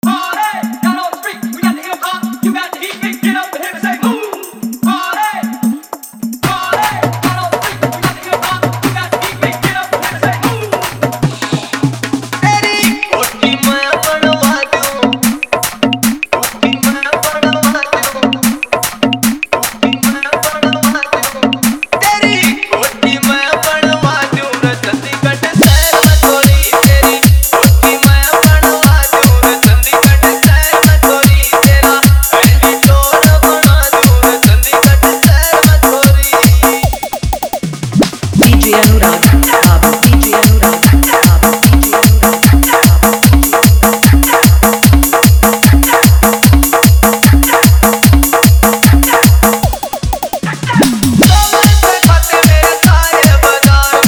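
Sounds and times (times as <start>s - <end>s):
desi bass dance mix: 0.0s - 54.0s.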